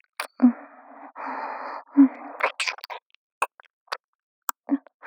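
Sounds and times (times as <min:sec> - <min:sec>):
licking of the left ear while sleeping: 0:00.0 - 0:00.3, 0:02.4 - 0:04.9.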